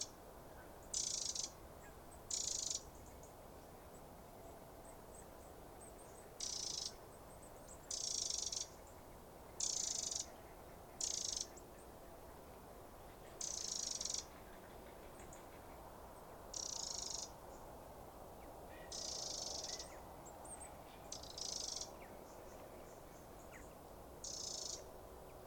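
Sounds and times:
low background hiss: 0:00.0 - 0:25.4
Eurasian wren churring: 0:00.9 - 0:01.6, 0:02.3 - 0:03.1, 0:06.4 - 0:07.0, 0:07.9 - 0:08.8, 0:09.6 - 0:10.3, 0:11.0 - 0:11.6, 0:13.4 - 0:14.3, 0:16.5 - 0:17.3, 0:18.9 - 0:20.0, 0:21.1 - 0:23.5, 0:24.2 - 0:24.9.

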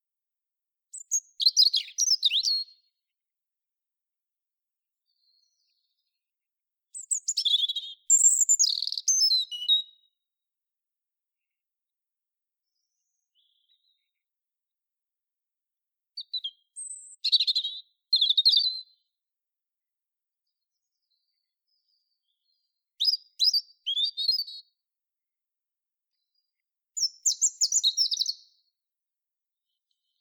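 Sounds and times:
European robin singing: 0:00.9 - 0:02.8, 0:06.9 - 0:10.1, 0:16.2 - 0:18.9, 0:23.0 - 0:24.7, 0:27.0 - 0:28.6.

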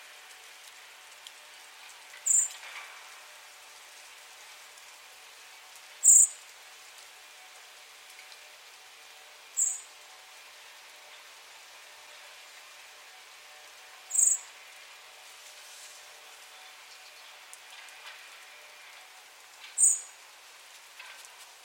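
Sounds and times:
background hiss: 0:00.0 - 0:21.6
common blackbird thin high call: 0:14.1 - 0:14.4.

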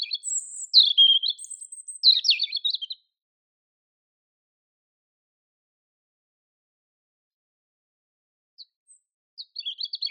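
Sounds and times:
European robin Erithacus rubecula singing: 0:00.0 - 0:03.1, 0:08.6 - 0:10.0.

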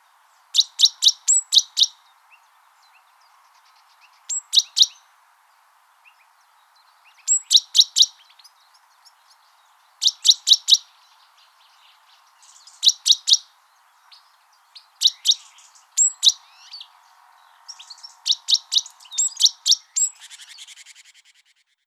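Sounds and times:
great tit sharp high calls: 0:00.0 - 0:05.1, 0:06.9 - 0:21.8.

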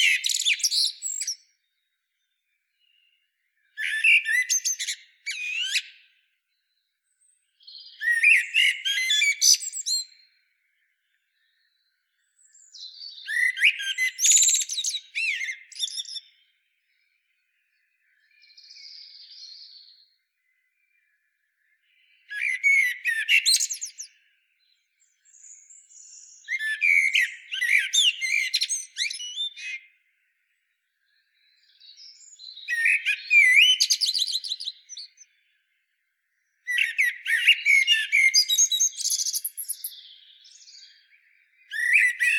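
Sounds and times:
common blackbird twittering: 0:00.0 - 0:01.4, 0:03.8 - 0:06.2, 0:07.6 - 0:10.2, 0:11.4 - 0:16.4, 0:21.9 - 0:24.3, 0:25.2 - 0:29.9, 0:31.4 - 0:35.4, 0:36.7 - 0:42.3.

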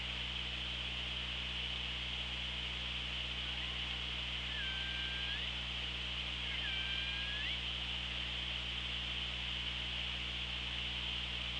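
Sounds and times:
continuous hiss: 0:00.0 - 0:11.5
low hum: 0:00.0 - 0:11.5
killer whale call: 0:04.5 - 0:05.5, 0:06.4 - 0:07.6.

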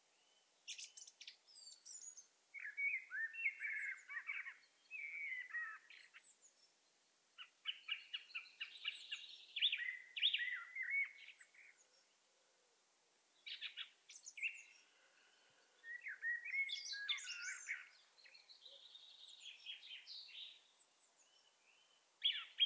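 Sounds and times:
Common blackbird Turdus merula song: 0:00.0 - 0:12.3, 0:13.3 - 0:22.6.

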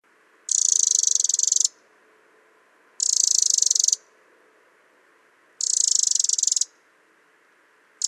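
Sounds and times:
Eurasian wren Troglodytes troglodytes churring rattles: 0:00.5 - 0:01.8, 0:03.0 - 0:04.1, 0:05.6 - 0:06.8.

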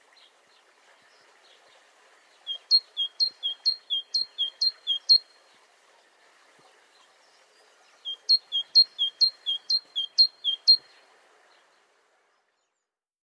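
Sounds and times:
great tit singing: 0:02.5 - 0:05.3, 0:08.1 - 0:10.8.

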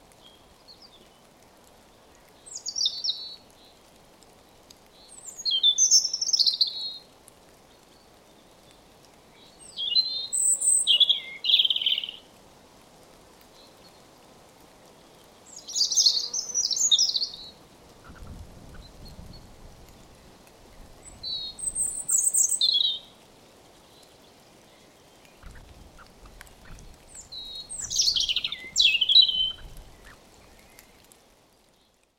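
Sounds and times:
soft steady background noise: 0:00.0 - 0:32.1
European robin singing: 0:02.5 - 0:03.4, 0:05.0 - 0:07.0, 0:09.4 - 0:12.3, 0:15.5 - 0:17.6, 0:21.0 - 0:23.2, 0:24.7 - 0:31.0.

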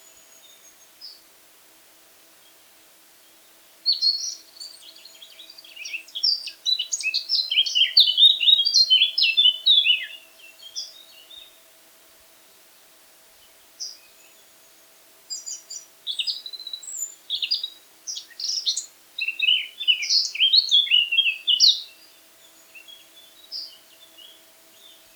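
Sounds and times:
Eurasian blackcap song: 0:03.9 - 0:11.6, 0:15.3 - 0:25.1.

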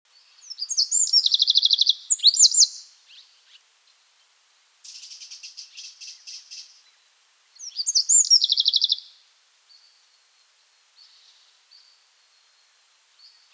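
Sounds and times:
Eurasian wren Troglodytes troglodytes song with rapid trill and chirps: 0:00.1 - 0:04.0, 0:04.8 - 0:07.0, 0:07.6 - 0:09.9.

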